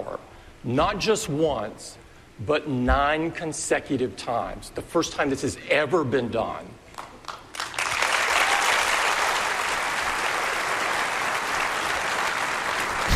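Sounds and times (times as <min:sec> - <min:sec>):
speech: 0:00.6 - 0:06.8
audience applause: 0:07.3 - 0:13.1.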